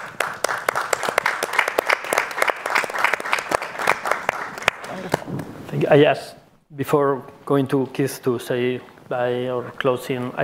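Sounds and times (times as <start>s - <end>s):
audience applause: 0.0s - 5.4s
speech: 5.7s - 10.4s.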